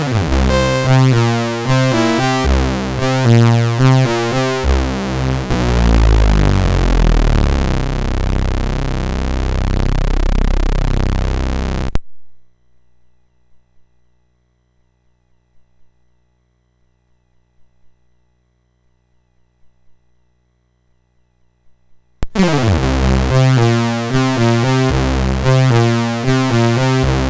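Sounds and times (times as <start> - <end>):
funk rock chiptune music on a SID MOS6581R4 chip: 0.0 - 12.0, 22.2 - 27.2.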